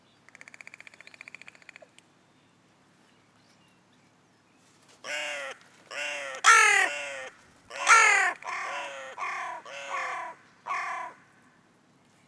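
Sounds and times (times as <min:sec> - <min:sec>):
hooded crow Corvus cornix cornix calling: 0:05.1 - 0:11.4.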